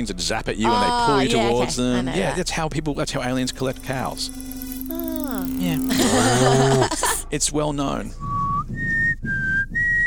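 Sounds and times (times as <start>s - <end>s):
speech: 0.0s - 4.5s, 5.6s - 8.3s
laughter: 0.7s - 2.6s, 5.9s - 7.3s
person whistling a sci-fi television theme tune: 8.2s - 10.0s.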